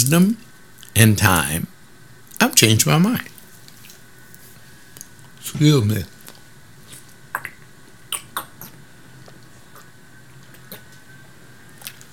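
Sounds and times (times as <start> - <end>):
speech: 0.0 - 1.7, 2.4 - 3.3, 5.4 - 6.1
person swallowing pills with a drink: 7.3 - 8.8.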